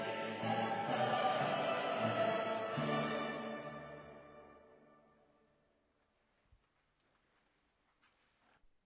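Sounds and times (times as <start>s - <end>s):
choral mass music: 0.0s - 5.6s.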